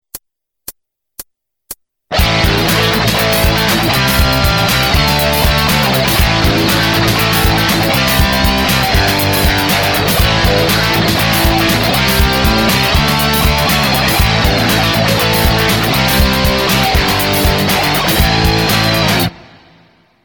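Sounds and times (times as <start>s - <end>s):
pentatonic guitar jam: 2.1s - 19.5s.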